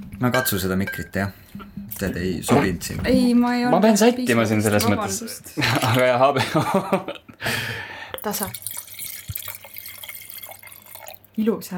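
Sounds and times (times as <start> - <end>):
speech: 0.2 - 8.8, 11.4 - 11.7
laughter: 5.6 - 7.6
water poured while watering plants: 8.2 - 11.4.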